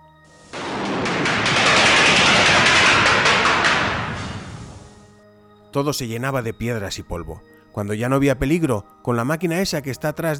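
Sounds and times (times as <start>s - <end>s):
mining blast explosions: 0.4s - 5.1s
speech: 5.8s - 10.3s.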